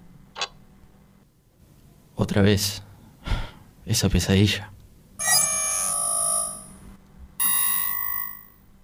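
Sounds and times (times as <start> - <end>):
speech: 2.2 - 2.9, 3.9 - 4.8
alarm ringing: 5.2 - 6.8, 7.4 - 8.6.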